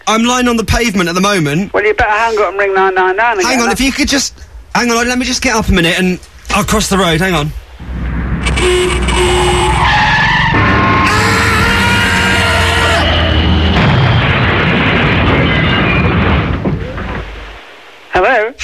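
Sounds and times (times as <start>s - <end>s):
speech: 0.1s - 7.6s
bus crash hitting a person: 7.8s - 18.0s
heavy vehicle tyres screeching in a skid: 8.4s - 17.6s.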